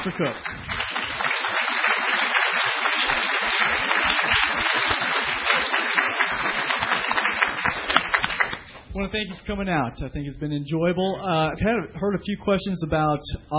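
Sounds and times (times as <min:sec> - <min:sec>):
speech: 0:00.0 - 0:00.6, 0:09.0 - 0:13.5
crowd applauding: 0:00.0 - 0:08.8.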